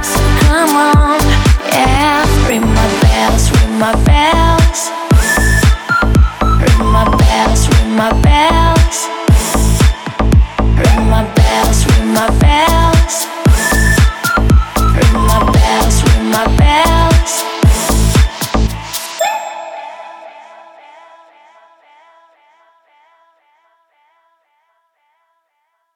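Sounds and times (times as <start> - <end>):
deep house remix: 0.0 - 20.7.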